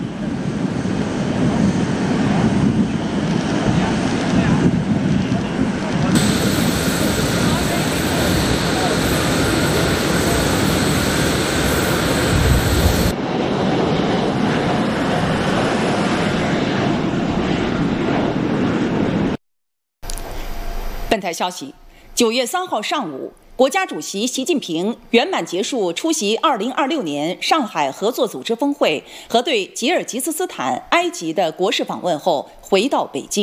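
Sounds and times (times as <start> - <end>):
jet aircraft engine at an airport in Cairo: 0.0 - 19.4
speech: 21.2 - 33.4.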